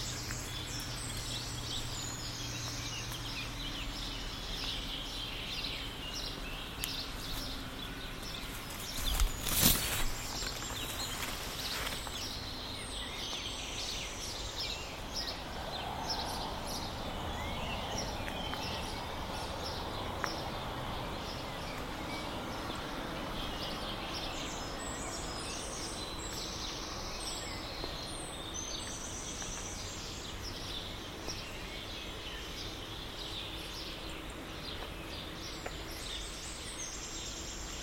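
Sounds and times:
background hum: 0:00.0 - 0:37.8
birds chirping on a May morning: 0:00.0 - 0:37.8.

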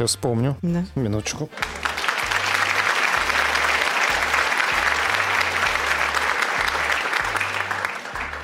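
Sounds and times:
speech: 0:00.0 - 0:01.9
recorded applause sound effect: 0:01.5 - 0:08.4.

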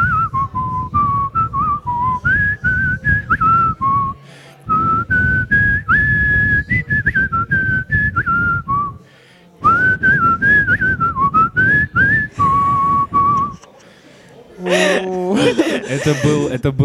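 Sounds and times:
person whistling a folk tune: 0:00.0 - 0:09.0, 0:09.6 - 0:13.7
laughter: 0:12.4 - 0:16.7.

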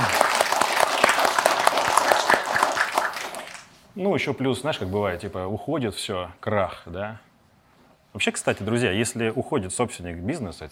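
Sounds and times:
studio audience applauding: 0:00.0 - 0:03.8
speech: 0:04.0 - 0:07.3, 0:08.2 - 0:10.7.

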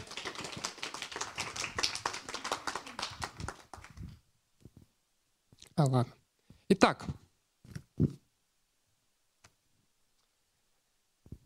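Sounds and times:
audience applause: 0:00.0 - 0:04.1
speech: 0:05.8 - 0:07.2.

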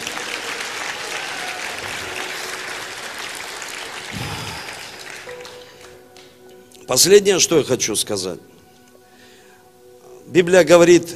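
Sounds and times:
audience applause: 0:00.0 - 0:06.3
speech: 0:06.9 - 0:08.6, 0:10.3 - 0:11.1.

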